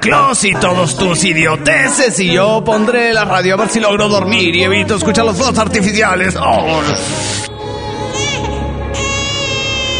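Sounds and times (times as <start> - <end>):
speech: 0.0 - 7.5
baby crying: 7.6 - 9.9.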